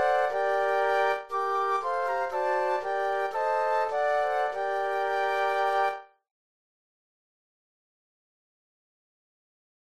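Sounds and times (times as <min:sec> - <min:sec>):
flute quartet: 0:00.0 - 0:06.1.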